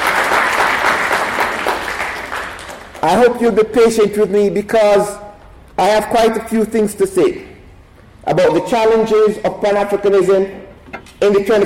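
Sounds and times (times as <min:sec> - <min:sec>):
audience round of applause: 0:00.0 - 0:03.0
speech: 0:03.0 - 0:05.2, 0:05.8 - 0:07.5, 0:08.2 - 0:10.6, 0:11.2 - 0:11.6.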